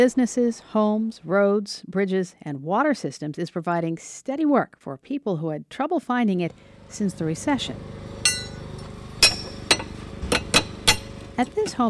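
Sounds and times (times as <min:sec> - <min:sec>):
speech: 0:00.0 - 0:08.1, 0:11.4 - 0:11.8
low steady hum: 0:06.4 - 0:11.8
carpenter hammering on a deck: 0:09.2 - 0:11.2.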